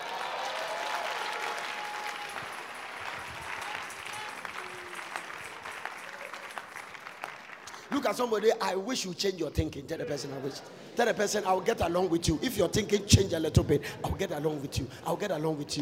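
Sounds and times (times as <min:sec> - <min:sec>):
audience clapping: 0:00.0 - 0:08.2
speech: 0:08.0 - 0:15.7.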